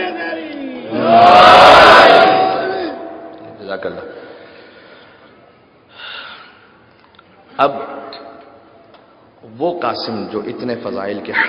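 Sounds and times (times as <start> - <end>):
crowd at a majlis chanting a religious slogan: 0.8 - 3.1
speech: 3.8 - 4.2, 7.6 - 8.0, 9.6 - 11.4.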